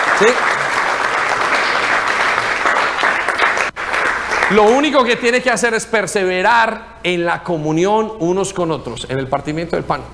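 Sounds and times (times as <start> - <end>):
audience applauding: 0.0 - 5.0
speech: 0.2 - 0.5, 4.5 - 10.1.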